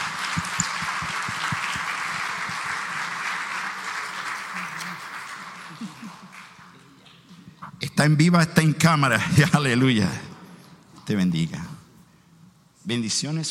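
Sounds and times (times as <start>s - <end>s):
crowd applauding: 0.0s - 7.1s
speech: 8.0s - 10.2s, 11.1s - 11.7s, 12.9s - 13.5s.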